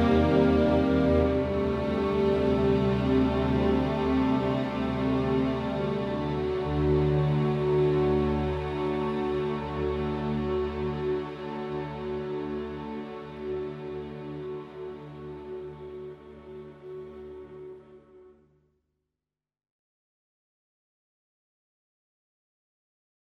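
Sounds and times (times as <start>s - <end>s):
slow minor theme on strings: 0.0s - 18.2s.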